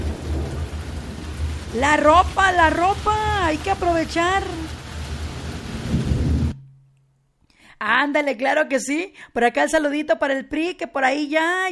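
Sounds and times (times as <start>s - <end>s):
deep low rumble like thunder: 0.0s - 6.6s
sudden downpour of heavy rain: 0.0s - 6.6s
speech: 1.7s - 4.8s, 7.8s - 11.7s.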